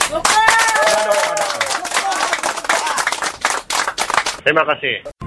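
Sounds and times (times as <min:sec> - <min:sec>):
voices calling out and cheering: 0:00.0 - 0:03.4
audience clapping: 0:00.0 - 0:04.4
speech: 0:00.1 - 0:00.6, 0:04.4 - 0:05.1.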